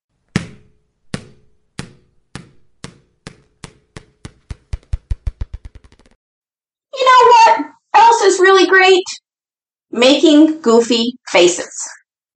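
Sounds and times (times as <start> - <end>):
balls bouncing: 0.2 - 6.2
speech: 8.4 - 9.2, 10.0 - 12.0.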